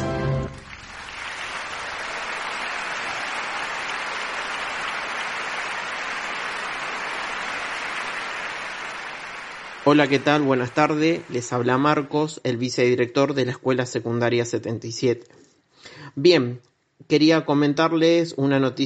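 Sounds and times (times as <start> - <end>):
crowd applause: 0.0 - 12.1
speech: 9.9 - 15.4, 16.2 - 18.8.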